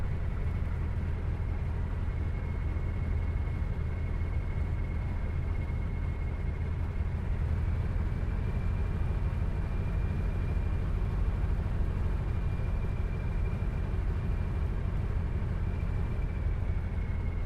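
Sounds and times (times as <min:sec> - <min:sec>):
aircraft taxiing heard from the interior: 0:00.0 - 0:17.4.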